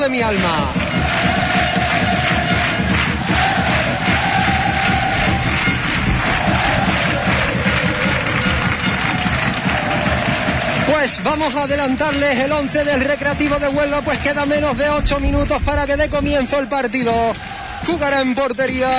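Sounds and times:
speech: 0.0 - 0.8, 10.9 - 18.9
stadium crowd roaring: 0.0 - 11.2, 16.3 - 18.4
packed stadium crowd clapping in unison: 0.0 - 18.9.

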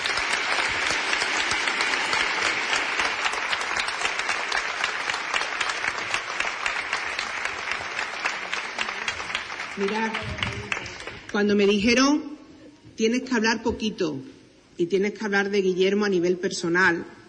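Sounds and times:
audience applause: 0.0 - 11.3
speech: 9.8 - 10.6, 11.3 - 12.3, 13.0 - 17.2.

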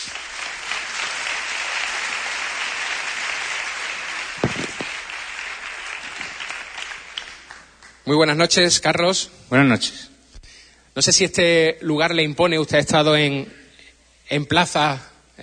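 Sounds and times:
audience applause: 0.0 - 8.0
speech: 8.1 - 10.1, 11.0 - 13.6, 14.3 - 15.4.

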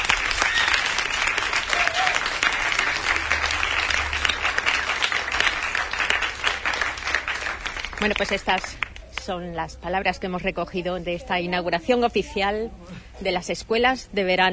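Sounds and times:
audience applause: 0.0 - 9.0
speech: 8.0 - 14.5.

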